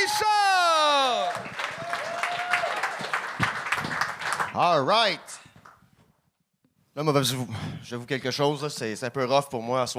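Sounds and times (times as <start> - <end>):
scattered shouts: 0.0 - 3.0
crowd applause: 0.8 - 4.9
speech: 4.6 - 5.4, 7.0 - 9.9.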